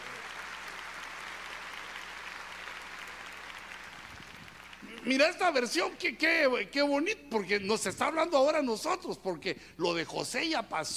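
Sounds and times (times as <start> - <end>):
audience applauding: 0.0 - 6.0
speech: 5.0 - 10.9.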